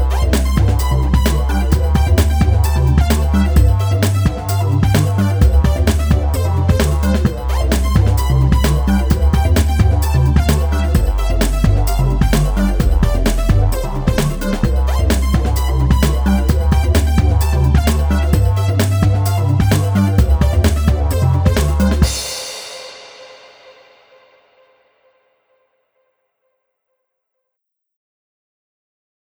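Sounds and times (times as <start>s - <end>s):
drum breaks: 0.0s - 23.0s.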